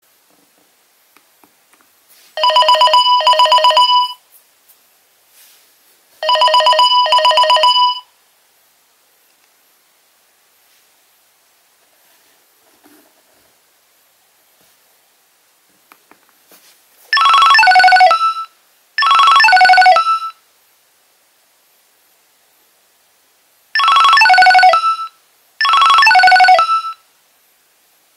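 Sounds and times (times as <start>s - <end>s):
Nokia 2300 ringtones: 2.4s - 4.2s, 6.2s - 8.1s, 17.2s - 20.4s, 23.8s - 27.0s.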